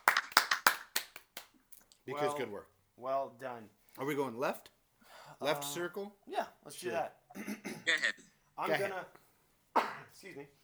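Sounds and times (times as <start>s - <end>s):
golf clap of soft crisp hand claps: 0.0s - 2.0s
speech: 2.1s - 9.2s, 9.8s - 10.6s.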